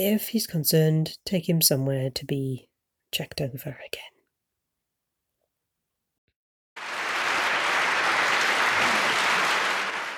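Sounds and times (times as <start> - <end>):
speech: 0.0 - 4.1
round of applause in a living room: 6.8 - 10.1.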